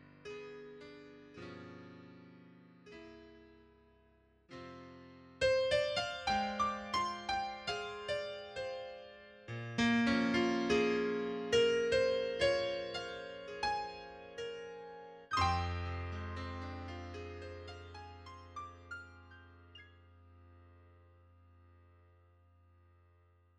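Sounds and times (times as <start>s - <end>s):
piano triad: 5.6s - 21.1s.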